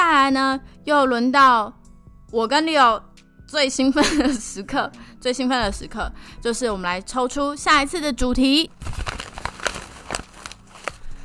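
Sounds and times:
speech: 0.3 - 9.2
paper bag rustling: 8.8 - 11.2.

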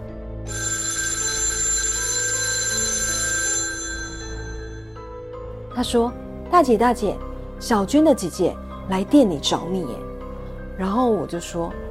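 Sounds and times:
telephone ringing: 0.5 - 5.3
speech: 5.8 - 10.1, 10.8 - 11.8.

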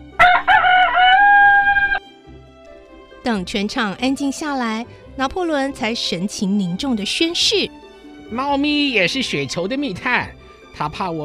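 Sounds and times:
rooster crowing loudly: 0.2 - 2.0
speech: 3.3 - 11.2.

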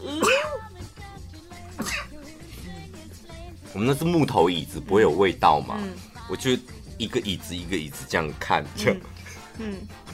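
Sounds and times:
sneeze: 0.0 - 0.6
speech: 3.7 - 10.1.

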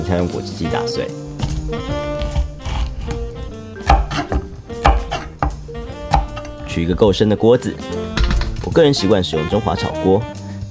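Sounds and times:
speech: 0.0 - 2.2, 6.8 - 8.0, 8.6 - 10.6
knife cutting chili peppers: 1.3 - 6.8.

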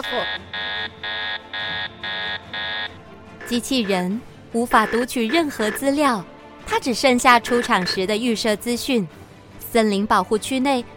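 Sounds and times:
speech: 0.0 - 1.1, 3.5 - 10.9
warning alarm buzzer: 0.0 - 4.0, 4.7 - 5.8, 7.4 - 8.0.

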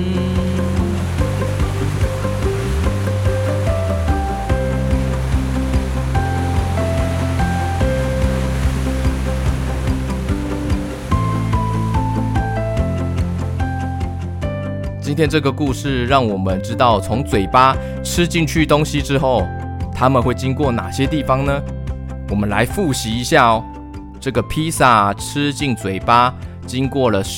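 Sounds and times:
sustained musical tones: 0.0 - 14.4
ocean waves: 0.0 - 14.5
speech: 15.2 - 27.3.

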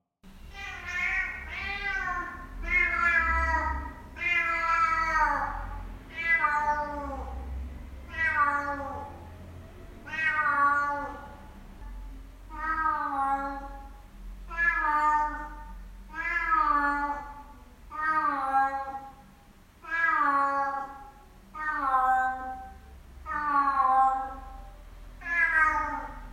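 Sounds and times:
cat meowing: 0.5 - 7.4, 8.1 - 9.2, 10.0 - 11.4, 12.5 - 13.9, 14.5 - 19.2, 19.8 - 24.6, 25.2 - 26.3.

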